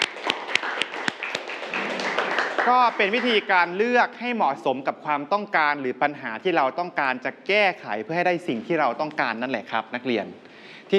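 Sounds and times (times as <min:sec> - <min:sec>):
scattered applause from students in a Thai classroom: 0:00.0 - 0:03.5
speech: 0:02.6 - 0:10.9.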